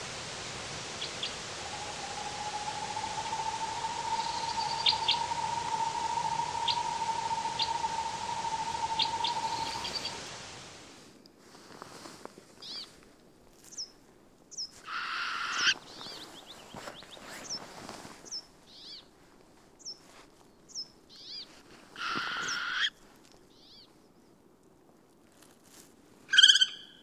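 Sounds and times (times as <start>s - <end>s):
Northern Hawk Owl trilling song: 1.0s - 10.4s, 14.9s - 15.8s, 22.0s - 23.0s, 26.3s - 27.0s
high chirps from another bird: 1.0s - 10.4s.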